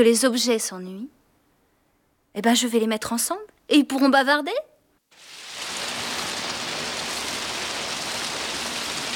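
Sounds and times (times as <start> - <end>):
speech: 0.0 - 1.2, 2.3 - 5.2
steady rain falling: 5.1 - 9.1.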